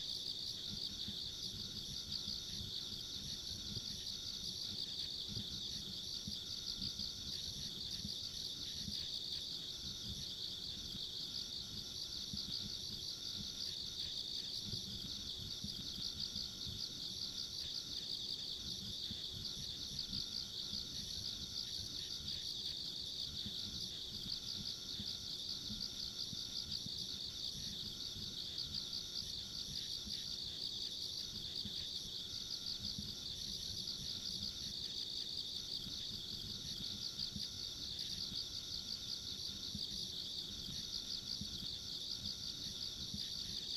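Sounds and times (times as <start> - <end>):
insects chirring in a chorus: 0.0 - 43.7.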